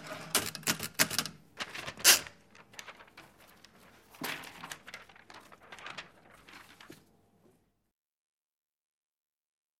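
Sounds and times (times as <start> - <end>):
typewriter typing: 0.0 - 6.2.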